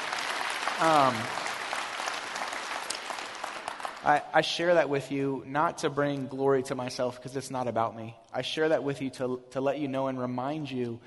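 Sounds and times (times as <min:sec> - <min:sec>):
crowd clapping: 0:00.0 - 0:04.8
speech: 0:00.8 - 0:01.4, 0:04.0 - 0:11.0.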